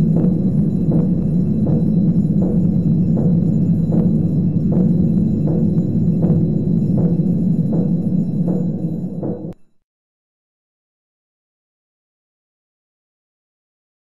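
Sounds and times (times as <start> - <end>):
navy alarm sounding: 0.0 - 9.6.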